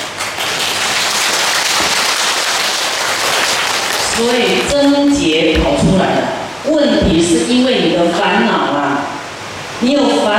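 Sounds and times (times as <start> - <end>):
audience clapping hands: 0.0 - 5.3
speech: 4.2 - 8.9, 9.8 - 10.3.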